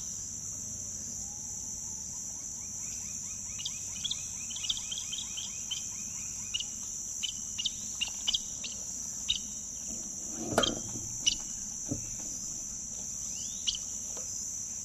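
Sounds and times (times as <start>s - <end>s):
Many-banded Aracari Pteroglossus pluricinctus calling: 3.7s - 13.9s.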